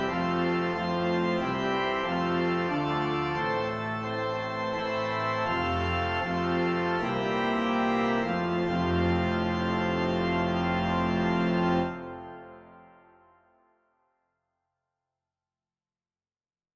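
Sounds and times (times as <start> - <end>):
organ: 0.0 - 13.4.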